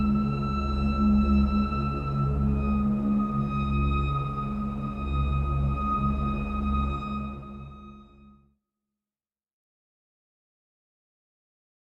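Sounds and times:
strings stem: 0.0s - 8.4s.

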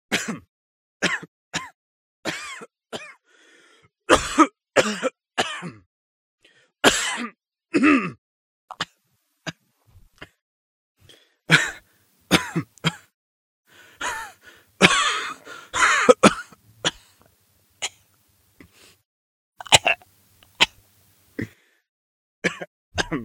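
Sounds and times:
person coughing: 0.1s - 3.2s, 4.1s - 5.8s, 6.8s - 9.6s, 11.5s - 13.1s, 14.0s - 17.2s, 19.6s - 20.0s, 22.4s - 23.2s.

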